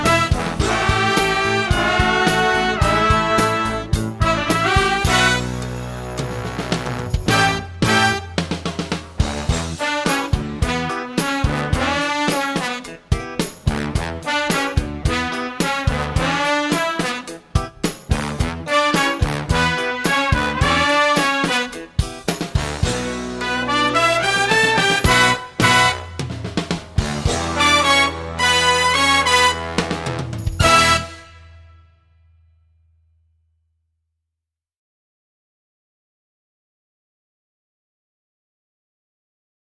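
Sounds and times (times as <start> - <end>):
accompaniment music: 0.0 - 31.7.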